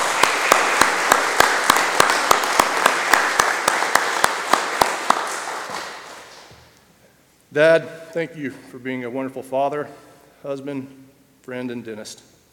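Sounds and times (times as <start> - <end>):
audience applause: 0.0 - 6.5
speech: 7.6 - 12.3.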